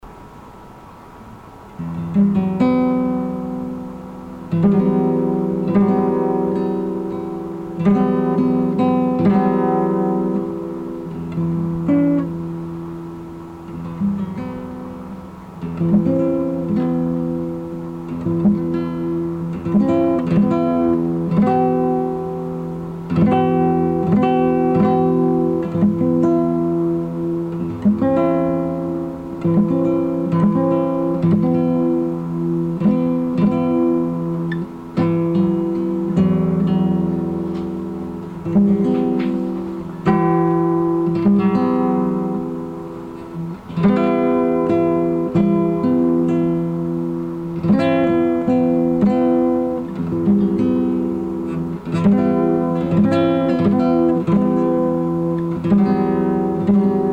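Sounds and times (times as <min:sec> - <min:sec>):
guitar: 0:00.0 - 0:57.1.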